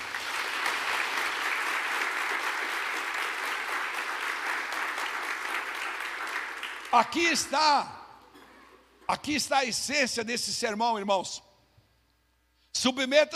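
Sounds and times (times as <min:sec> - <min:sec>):
audience applauding: 0:00.0 - 0:07.1
speech: 0:06.9 - 0:08.0, 0:09.1 - 0:11.5, 0:12.8 - 0:13.3.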